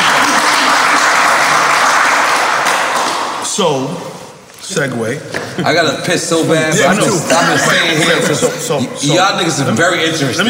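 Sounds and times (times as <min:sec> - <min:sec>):
crowd applauding: 0:00.0 - 0:03.5
speech: 0:03.6 - 0:04.1, 0:04.7 - 0:10.4
laughter: 0:05.3 - 0:10.0.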